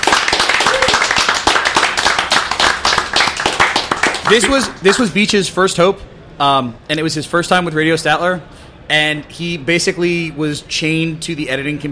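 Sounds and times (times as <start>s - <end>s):
audience applause: 0.0s - 5.0s
speech: 4.3s - 11.9s.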